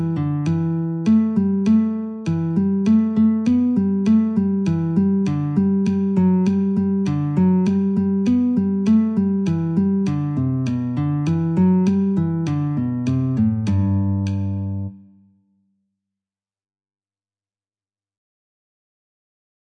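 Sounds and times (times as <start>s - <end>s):
guitar: 0.0s - 15.4s.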